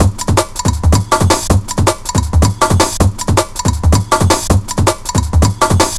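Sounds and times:
drum loop at 160 bpm: 0:00.0 - 0:05.9.

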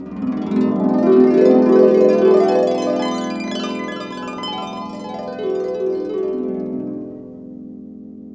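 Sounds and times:
harp glissando: 0:00.2 - 0:07.4.

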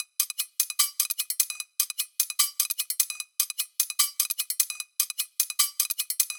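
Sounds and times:
kitchen foley drums at 150 BPM: 0:00.0 - 0:06.3.

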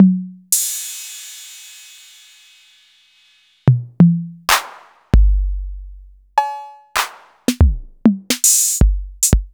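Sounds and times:
TR-808 drum machine: 0:03.7 - 0:09.5.

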